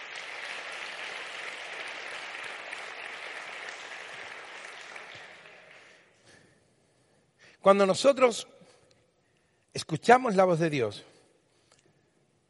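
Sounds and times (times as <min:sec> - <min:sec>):
audience applause: 0:00.0 - 0:06.1
speech: 0:07.6 - 0:08.6, 0:09.9 - 0:11.1.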